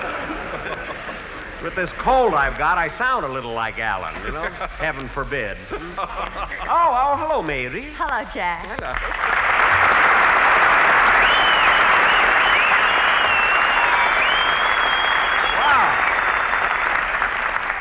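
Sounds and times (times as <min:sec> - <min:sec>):
laughter: 0:00.0 - 0:01.9, 0:04.0 - 0:07.2
speech: 0:01.6 - 0:09.5
studio audience applause: 0:08.8 - 0:17.7.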